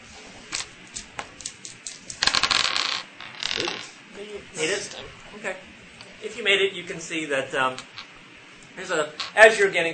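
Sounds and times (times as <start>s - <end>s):
dice rolled for skill checks clattering on a hard surface: 1.7s - 3.9s
speech: 4.6s - 7.9s, 8.8s - 9.9s.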